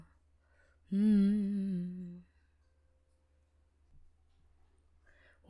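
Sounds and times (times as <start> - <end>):
main vocal: 0.9 - 2.2.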